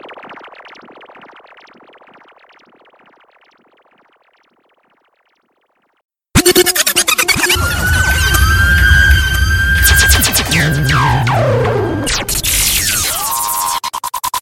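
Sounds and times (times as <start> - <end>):
sound effects: 6.4 - 13.8.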